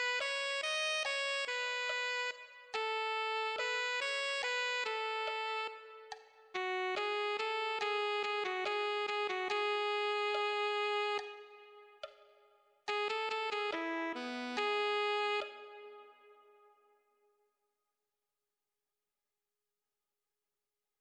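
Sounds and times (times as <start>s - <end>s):
alto saxophone: 0.0s - 12.1s, 12.9s - 16.8s.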